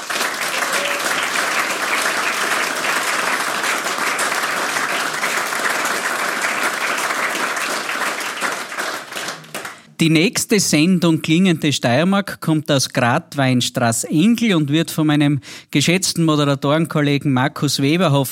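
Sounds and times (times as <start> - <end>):
audience applause: 0.0 - 10.0
speech: 10.0 - 18.3.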